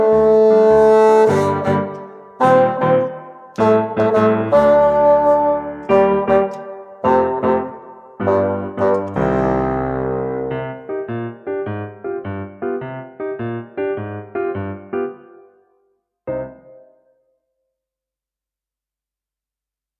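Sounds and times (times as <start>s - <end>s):
bassoon: 0.0s - 11.1s.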